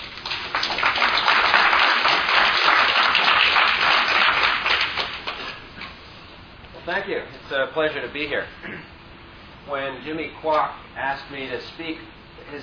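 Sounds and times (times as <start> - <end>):
crowd applauding to welcome a speaker to a talk: 0.0 - 5.4
speech: 7.0 - 9.0, 9.6 - 12.6.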